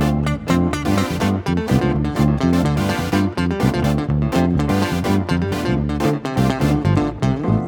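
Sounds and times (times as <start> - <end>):
nu disco backing track at 125 bpm in D minor: 0.0 - 7.6.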